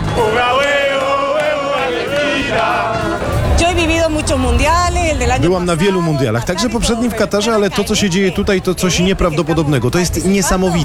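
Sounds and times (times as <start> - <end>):
large crowd of football fans cheering and chanting: 0.0 - 6.2
speech: 4.2 - 10.8.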